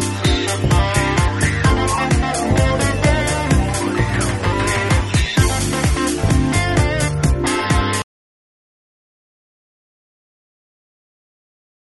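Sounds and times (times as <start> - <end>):
vocal over a groove: 0.0 - 8.0.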